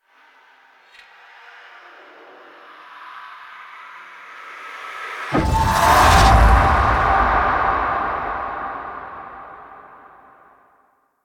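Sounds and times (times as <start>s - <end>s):
memory transition effect: 5.4s - 10.1s.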